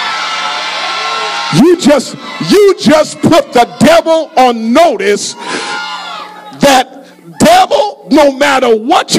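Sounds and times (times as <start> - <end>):
church congregation hollering and screaming: 0.0 - 6.6
speech: 1.5 - 5.8, 7.5 - 9.1.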